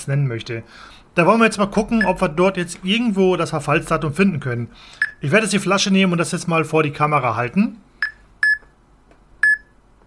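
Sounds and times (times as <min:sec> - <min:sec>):
speech: 0:00.0 - 0:07.9
electronic beeping from a detector searching a bottle: 0:02.0 - 0:02.2, 0:08.0 - 0:08.7, 0:09.4 - 0:09.7.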